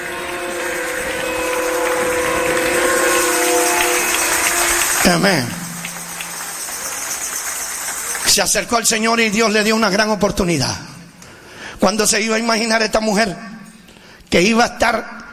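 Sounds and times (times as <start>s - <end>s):
audience applauding: 0.0s - 9.2s
speech: 5.1s - 5.6s, 8.4s - 10.9s, 11.8s - 13.5s, 14.3s - 15.2s.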